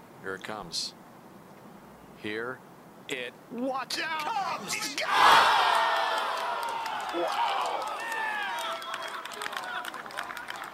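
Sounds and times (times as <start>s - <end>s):
speech: 0.2s - 1.0s, 2.2s - 5.8s, 7.1s - 7.9s
golf crowd cheering a made putt: 4.2s - 10.7s
high shouts and whistles: 5.0s - 9.2s.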